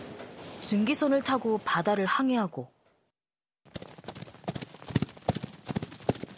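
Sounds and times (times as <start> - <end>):
speech: 0.7 - 2.8
horse hooves clip-clopping: 3.7 - 6.3.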